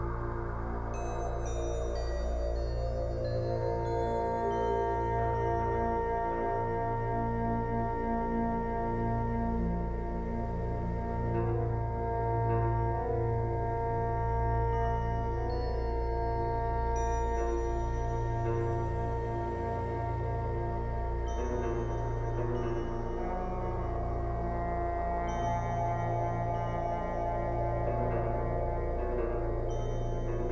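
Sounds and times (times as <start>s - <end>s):
theta brainwave zen meditation music: 0.0s - 30.5s.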